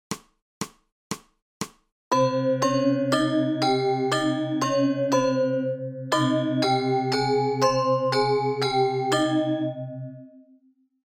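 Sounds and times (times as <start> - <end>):
musical scale: 2.1 - 10.3.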